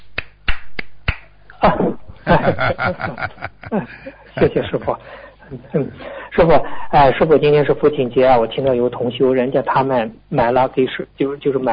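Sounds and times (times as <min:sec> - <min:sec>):
hand claps: 0:00.0 - 0:01.3
laughter: 0:01.6 - 0:05.0
speech: 0:02.3 - 0:11.7.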